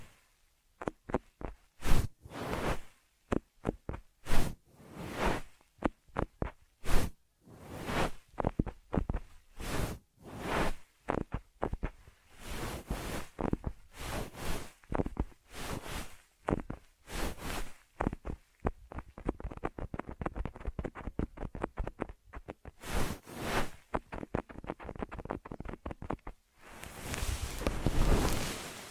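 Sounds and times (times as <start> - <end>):
ear massage rubbing and brushing strokes: 0.0 - 28.8.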